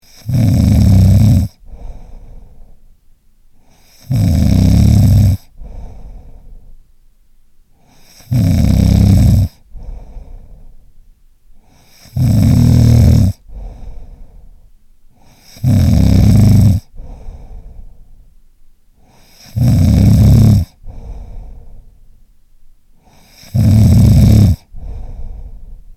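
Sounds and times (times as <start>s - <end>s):
loud snoring: 0.0s - 2.4s, 3.7s - 6.1s, 7.9s - 10.4s, 11.6s - 14.1s, 15.2s - 17.6s, 19.0s - 21.4s, 23.0s - 25.6s.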